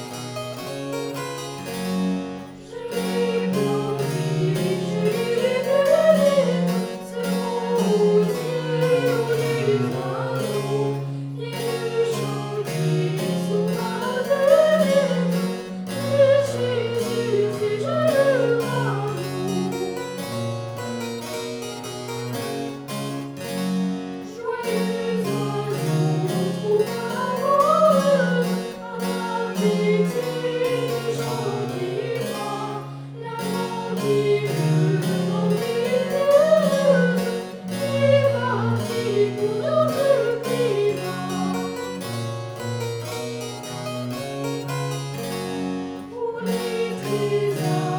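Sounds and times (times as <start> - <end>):
vocals: 0.9 - 21.5, 23.3 - 47.9.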